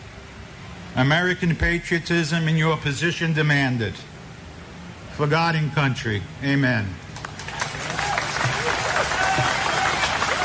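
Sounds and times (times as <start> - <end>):
speech: 1.0 - 4.1, 5.2 - 7.0
ceremony audience applause: 7.2 - 10.4.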